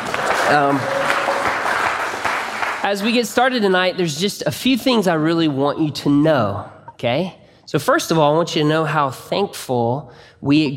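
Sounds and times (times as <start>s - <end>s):
audience clapping: 0.0s - 3.6s
speech: 0.5s - 1.0s, 2.8s - 10.7s.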